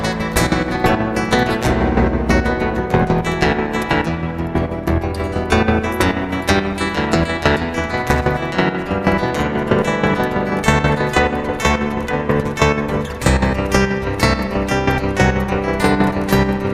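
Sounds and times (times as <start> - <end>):
meditative guitar improvisation: 0.0 - 16.7.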